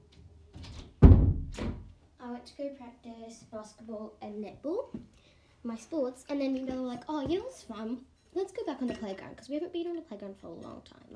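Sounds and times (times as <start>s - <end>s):
door shutting: 0.6s - 1.9s
speech: 2.5s - 11.1s.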